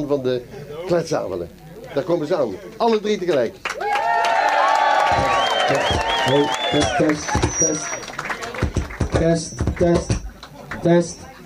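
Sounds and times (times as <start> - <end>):
speech: 0.0 - 3.7, 5.1 - 8.1, 9.2 - 10.2, 10.8 - 11.3
audience applause: 3.3 - 10.8.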